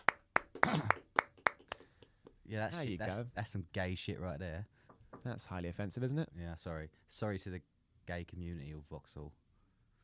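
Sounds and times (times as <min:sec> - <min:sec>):
small round of applause: 0:00.0 - 0:02.4
speech: 0:02.5 - 0:09.4.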